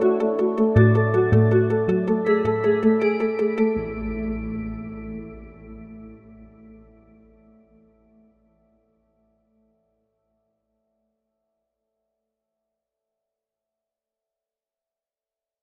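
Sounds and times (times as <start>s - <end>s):
lyric peaceful space music: 0.0s - 9.5s.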